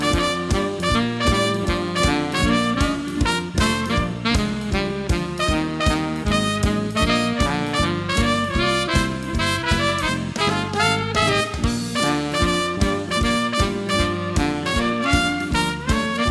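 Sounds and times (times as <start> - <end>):
alto sax playing a duet: 0.0 - 16.2
trumpet playing a duet: 0.0 - 16.2.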